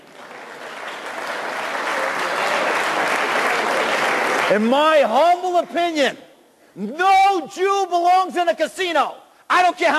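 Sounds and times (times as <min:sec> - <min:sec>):
audience clapping: 0:00.0 - 0:05.0
speech: 0:04.5 - 0:06.2, 0:06.8 - 0:09.9.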